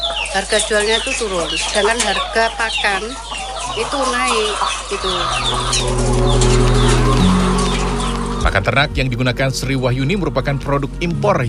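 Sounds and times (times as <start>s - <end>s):
laying hens clucking at an egg farm: 0.0s - 8.7s
speech: 0.4s - 6.6s, 8.4s - 11.4s.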